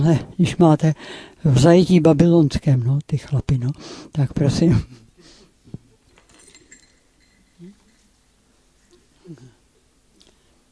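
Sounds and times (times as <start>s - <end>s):
speech: 0.0s - 5.0s
small bell ringing on a dog: 6.1s - 8.6s.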